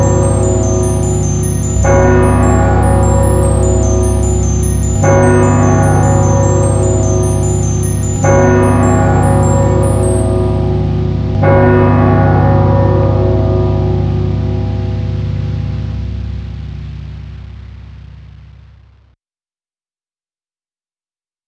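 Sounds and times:
clock tower: 0:00.0 - 0:16.7.

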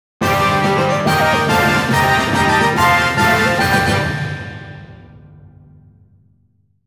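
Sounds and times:
victory jingle: 0:00.2 - 0:05.4.

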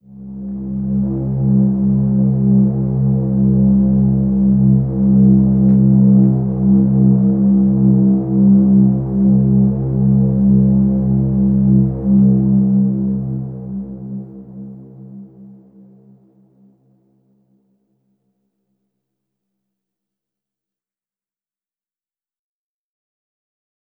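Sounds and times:
downtown overlay drone: 0:00.1 - 0:16.1.

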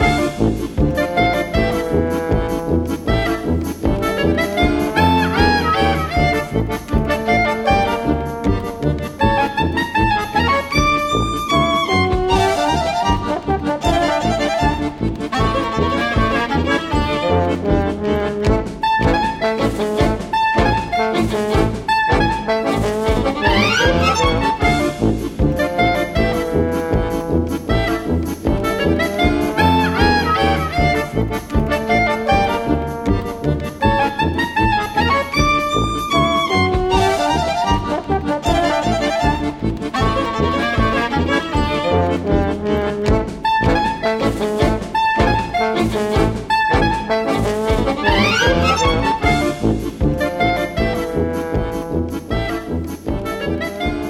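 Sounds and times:
win jingle: 0:00.0 - 0:54.0.

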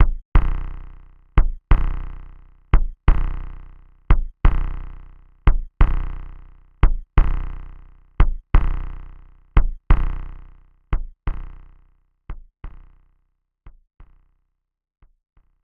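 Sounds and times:
heartbeat: 0:00.0 - 0:00.5, 0:01.4 - 0:02.0, 0:02.8 - 0:03.4, 0:04.1 - 0:04.7, 0:05.5 - 0:06.1, 0:06.8 - 0:07.4, 0:08.2 - 0:08.8, 0:09.6 - 0:09.9.

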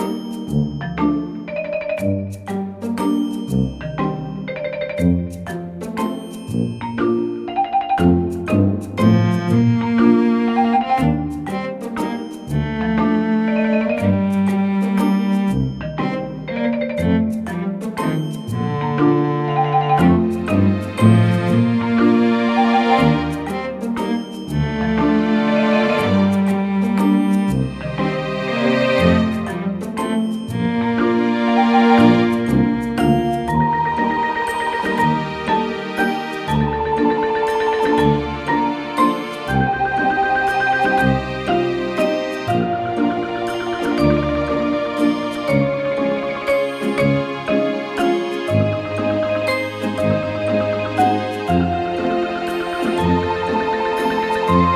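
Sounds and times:
relaxing slice of life music loop: 0:00.0 - 0:54.7.

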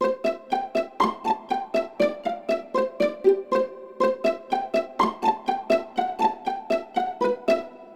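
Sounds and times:
violin pizzicato: 0:00.0 - 0:07.9.

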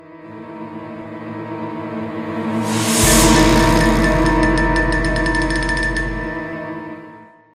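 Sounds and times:
musical stinger: 0:02.0 - 0:07.1.

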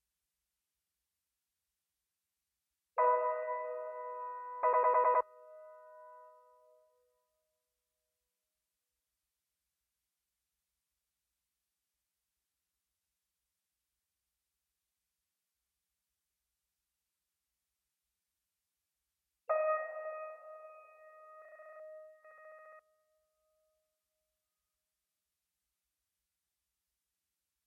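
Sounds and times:
piano: 0:03.0 - 0:07.0, 0:19.5 - 0:22.8.

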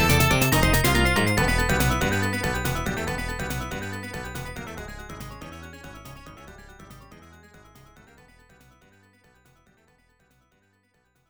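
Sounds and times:
unused background music: 0:00.0 - 0:08.7.

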